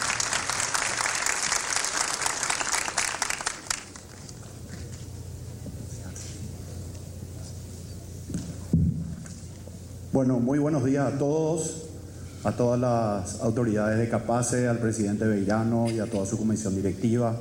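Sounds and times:
loud dense applause from a crowd: 0.0s - 4.3s
faint shuffling: 4.0s - 9.9s
speech: 10.2s - 11.8s, 12.4s - 17.4s.

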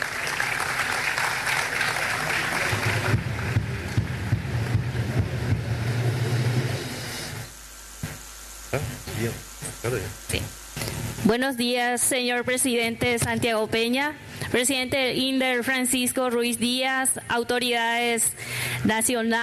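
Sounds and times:
audience applause: 0.0s - 6.8s
speech: 8.8s - 10.5s, 11.2s - 19.4s.

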